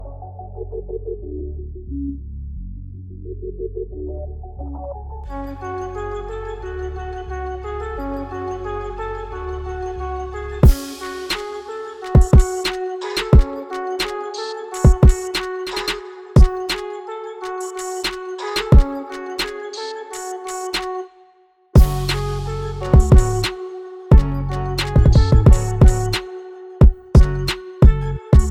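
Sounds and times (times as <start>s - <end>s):
instrumental music: 5.3s - 28.4s.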